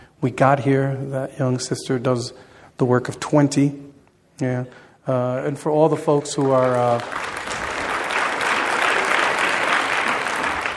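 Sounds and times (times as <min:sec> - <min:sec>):
speech: 0:00.2 - 0:07.3
audience applause: 0:06.3 - 0:10.7.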